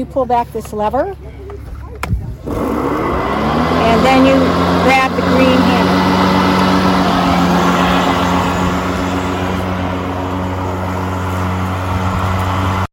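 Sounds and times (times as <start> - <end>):
speech: 0.0 - 1.4, 4.0 - 5.9
lawn mower engine running: 2.4 - 12.9.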